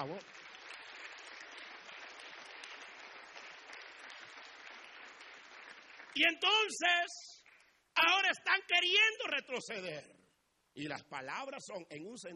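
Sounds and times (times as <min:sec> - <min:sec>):
speech: 0:00.0 - 0:00.4, 0:06.2 - 0:07.4, 0:08.0 - 0:10.2, 0:10.8 - 0:12.3
audience clapping hands: 0:00.0 - 0:08.3.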